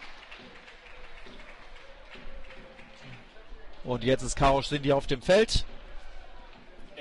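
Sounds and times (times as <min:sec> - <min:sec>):
polite applause from the stands: 0:00.0 - 0:03.5
speech: 0:03.8 - 0:05.7.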